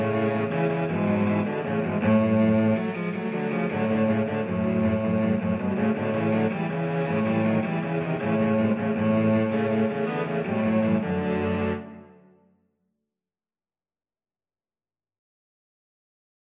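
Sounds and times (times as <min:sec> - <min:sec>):
cello trio playing a Mexican dance: 0:00.0 - 0:12.0.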